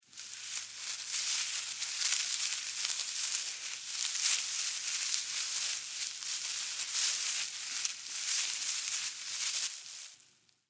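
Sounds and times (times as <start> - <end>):
animal critter moving through grass foliage: 0.0 - 10.4.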